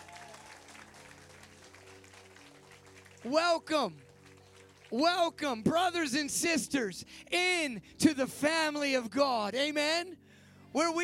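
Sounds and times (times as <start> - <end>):
round of applause: 0.0 - 5.4
speech: 3.2 - 4.1, 4.9 - 11.0.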